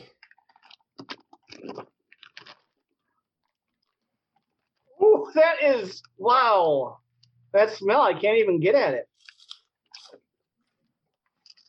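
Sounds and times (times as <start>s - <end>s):
crunching on spicy chicken-skin snack: 0.0s - 4.8s, 9.2s - 11.6s
speech: 5.3s - 9.3s.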